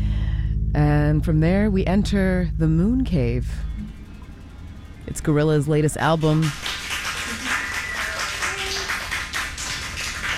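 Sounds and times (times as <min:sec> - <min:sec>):
speech: 0:00.8 - 0:03.9, 0:05.1 - 0:06.7
group of people clapping: 0:06.2 - 0:10.3.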